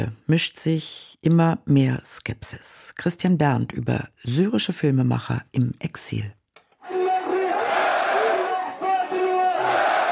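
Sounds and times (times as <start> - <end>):
speech: 0.0 - 6.4
large crowd cheering and chanting in unison: 6.8 - 10.1.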